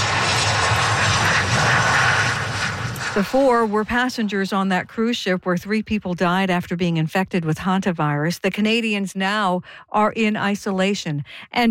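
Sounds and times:
plane landing in Victoria: 0.0 - 6.2
speech: 3.2 - 11.7.

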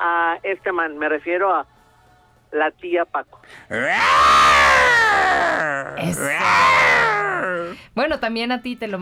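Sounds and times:
speech: 0.3 - 1.7, 2.5 - 9.0
person imitating a lioness roar: 3.7 - 7.8.

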